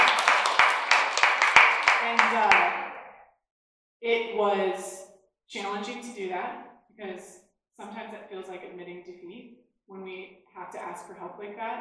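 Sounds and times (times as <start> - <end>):
audience clapping: 0.0 - 2.9
speech: 4.1 - 4.9, 5.5 - 11.7.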